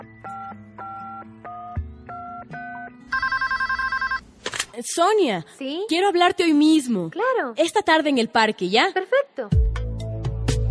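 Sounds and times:
steady electronic telephone dialing beeps: 0.0 - 4.2
rapid warbling electronic telephone ring: 3.1 - 4.2
speech: 4.8 - 9.6.

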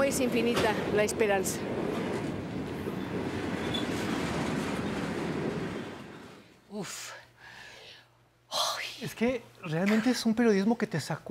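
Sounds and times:
train passing with heavy rumble and rail clatter: 0.0 - 6.7
speech: 0.1 - 1.9, 6.8 - 7.2, 9.0 - 11.3.

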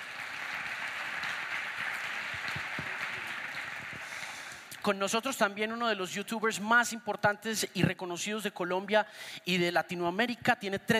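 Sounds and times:
audience applause: 0.0 - 4.8
speech: 4.8 - 10.9.

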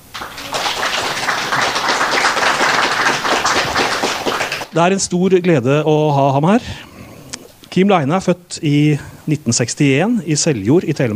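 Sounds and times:
audience applause: 0.0 - 4.7
speech: 4.8 - 6.8, 7.8 - 11.1.

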